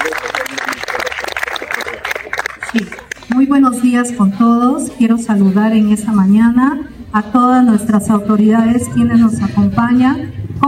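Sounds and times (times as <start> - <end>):
loud crowd applause: 0.0 - 3.5
speech: 2.8 - 10.6.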